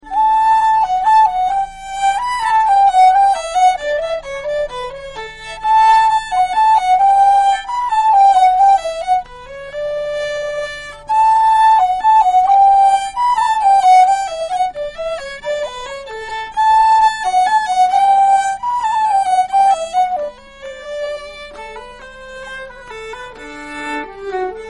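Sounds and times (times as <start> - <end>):
waltz music: 0.0 - 24.6.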